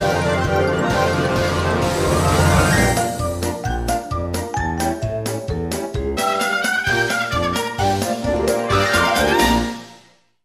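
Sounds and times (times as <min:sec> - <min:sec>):
cartoon city ambience: 0:00.0 - 0:10.4.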